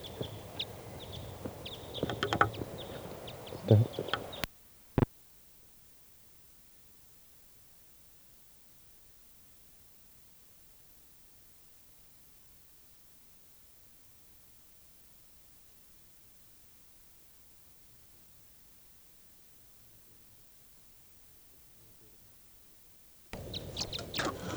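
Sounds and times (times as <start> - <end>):
bird calls near the net: 0.0 - 4.5, 23.4 - 24.5.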